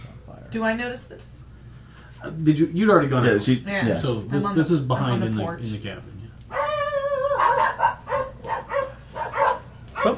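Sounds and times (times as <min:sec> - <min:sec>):
speech: 0:00.5 - 0:01.4, 0:02.2 - 0:06.2
small dogs barking: 0:06.5 - 0:10.1.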